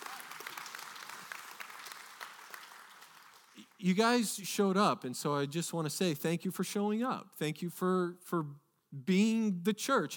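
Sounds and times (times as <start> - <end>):
audience applause: 0.0 - 3.8
speech: 3.8 - 10.1.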